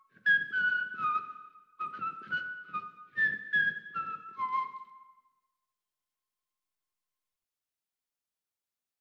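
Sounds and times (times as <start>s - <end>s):
whistle: 0.0s - 5.4s.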